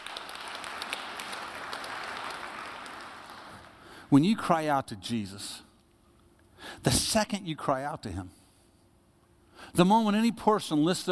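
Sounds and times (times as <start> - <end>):
audience clapping: 0.0 - 4.0
speech: 4.1 - 5.7, 6.8 - 8.4, 9.7 - 11.0.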